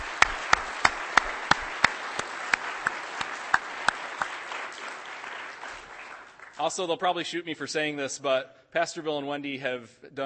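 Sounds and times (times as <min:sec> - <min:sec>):
warm round of applause: 0:00.0 - 0:06.7
speech: 0:06.6 - 0:10.2.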